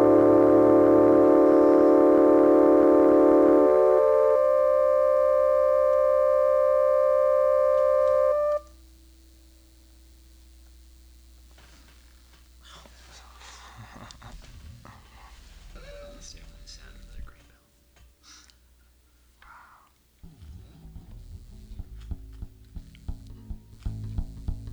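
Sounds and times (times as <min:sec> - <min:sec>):
song: 0:00.0 - 0:08.6.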